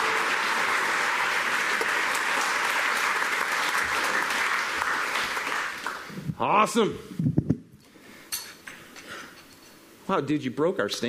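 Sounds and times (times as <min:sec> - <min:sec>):
audience applause greeting a speaker: 0:00.0 - 0:06.3
speech: 0:06.4 - 0:07.3, 0:10.1 - 0:11.0.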